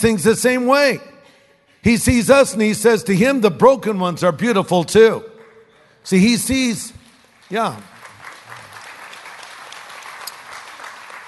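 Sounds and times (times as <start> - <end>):
speech: 0.0 - 1.1, 1.8 - 5.3, 6.0 - 7.9
smattering of applause: 6.9 - 11.2.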